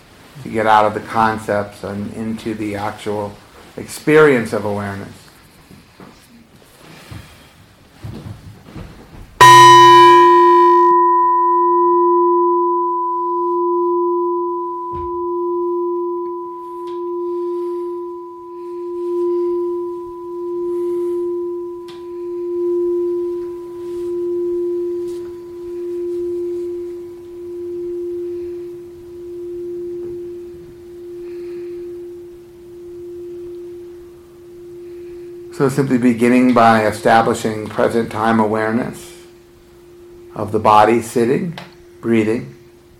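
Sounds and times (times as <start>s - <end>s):
speech: 0.4s - 5.2s, 35.6s - 39.1s, 40.4s - 42.5s
meditation bell ringing: 9.4s - 42.9s.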